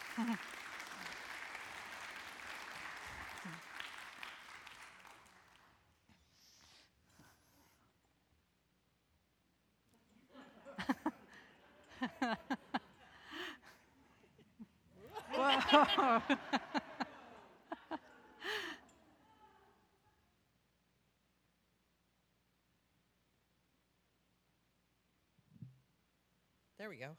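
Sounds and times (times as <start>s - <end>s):
laughter: 0.0s - 3.9s, 10.1s - 20.0s
audience applause: 0.0s - 5.8s, 15.1s - 18.8s
speech: 0.2s - 0.6s, 15.7s - 16.7s, 26.9s - 27.1s.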